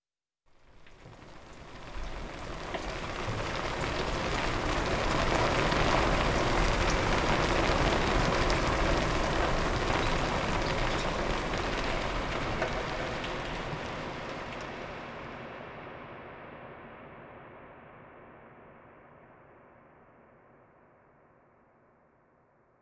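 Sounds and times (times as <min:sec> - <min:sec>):
rain: 0:00.5 - 0:15.6.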